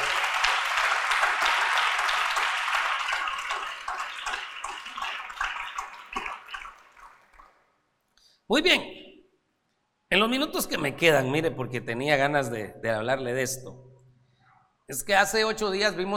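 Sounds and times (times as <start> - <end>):
audience clapping: 0.0 - 7.7
speech: 8.5 - 9.0, 10.1 - 13.8, 14.9 - 16.1.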